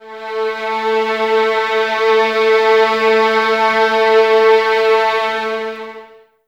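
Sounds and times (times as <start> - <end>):
violins in a string ensemble: 0.0 - 6.3.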